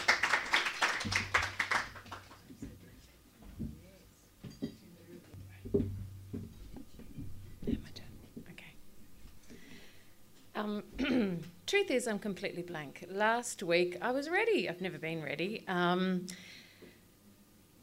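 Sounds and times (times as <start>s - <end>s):
audience round of applause: 0.0s - 2.5s
speech: 10.6s - 16.6s.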